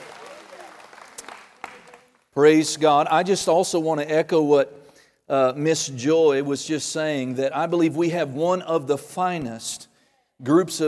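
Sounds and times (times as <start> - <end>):
audience applauding: 0.0 - 2.4
speech: 2.4 - 10.8.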